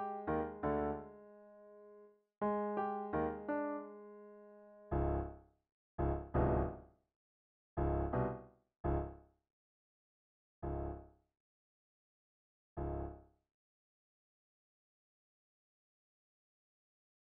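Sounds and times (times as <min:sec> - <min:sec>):
piano: 0:00.0 - 0:05.4, 0:06.0 - 0:06.9, 0:07.8 - 0:09.2, 0:12.8 - 0:13.2.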